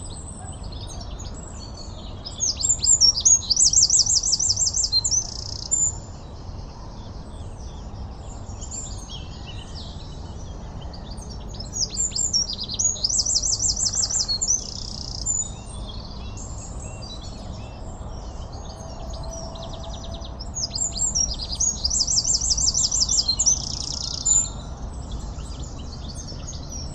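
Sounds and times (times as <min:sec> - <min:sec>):
Eurasian wren singing: 0:00.0 - 0:06.4, 0:07.4 - 0:26.9.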